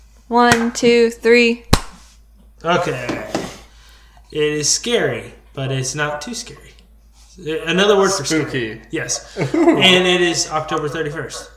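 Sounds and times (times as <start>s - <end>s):
speech: 0.3s - 1.8s, 2.6s - 3.2s, 4.3s - 6.8s, 7.4s - 11.5s
single hand clap: 0.5s - 0.7s, 1.7s - 2.0s
laughter: 9.0s - 11.4s.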